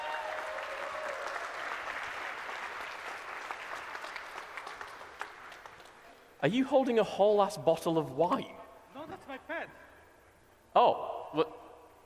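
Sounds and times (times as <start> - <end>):
live audience applause: 0.0 - 6.1
speech: 6.4 - 8.6.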